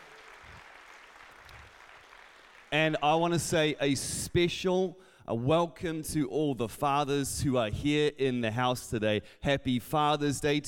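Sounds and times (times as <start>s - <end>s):
church congregation applause at a Father's Day service: 0.0s - 3.4s
speech: 2.7s - 10.6s.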